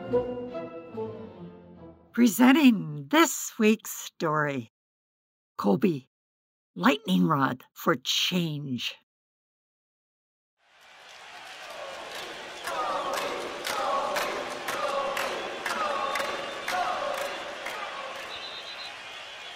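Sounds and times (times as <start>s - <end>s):
speech: 0.1s - 0.4s, 2.2s - 4.7s, 5.6s - 6.1s, 6.7s - 9.0s
arena crowd roaring: 10.6s - 19.5s
audience chanting: 10.7s - 19.5s.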